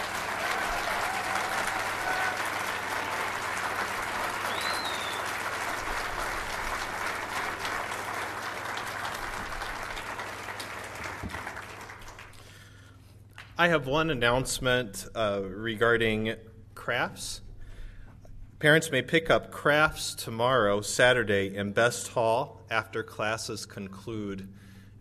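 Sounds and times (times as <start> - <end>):
audience applause: 0.0 - 12.6
speech: 13.6 - 17.4, 18.6 - 24.7.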